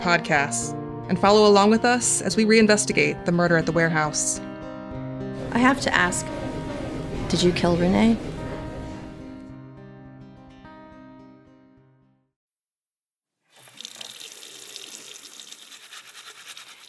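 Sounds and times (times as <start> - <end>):
speech: 0.0 - 4.5, 5.5 - 6.4, 7.3 - 8.3
tonal musical passage: 4.4 - 9.8
water running from a tap while hands are washed: 13.5 - 16.8.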